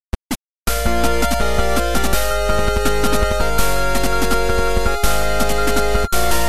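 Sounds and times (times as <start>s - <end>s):
battle victory music: 0.7s - 6.4s.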